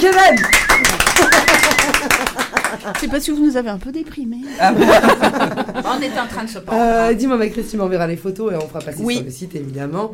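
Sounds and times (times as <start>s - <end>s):
speech: 0.0s - 0.6s, 2.8s - 10.1s
applause: 0.0s - 3.1s
laughter: 0.4s - 3.1s, 4.5s - 6.4s.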